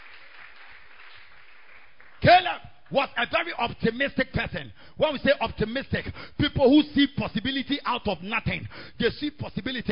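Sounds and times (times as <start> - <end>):
audience clapping hands: 0.0 - 3.3
speech: 2.5 - 9.9.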